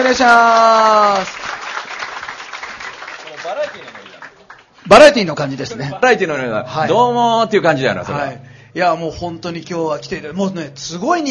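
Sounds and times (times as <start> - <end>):
speech: 0.0 - 1.5, 4.8 - 11.2
audience applause: 0.0 - 4.8.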